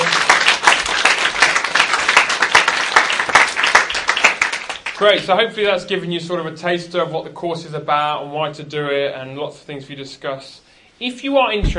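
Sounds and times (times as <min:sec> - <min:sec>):
room full of people applauding: 0:00.0 - 0:05.3
speech: 0:05.0 - 0:11.7.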